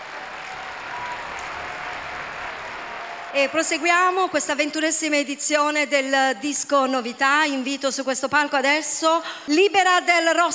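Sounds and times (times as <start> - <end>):
audience applause: 0.0 - 4.4
speech: 3.3 - 10.5.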